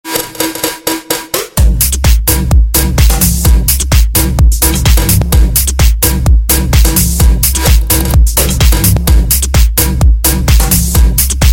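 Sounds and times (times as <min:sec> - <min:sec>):
drum and bass music: 0:00.0 - 0:11.5.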